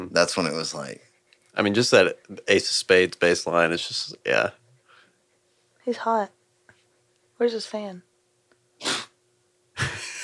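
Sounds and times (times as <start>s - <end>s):
speech: 0.0s - 4.6s, 5.8s - 6.4s, 7.4s - 8.1s
dog sneezing: 8.8s - 9.2s.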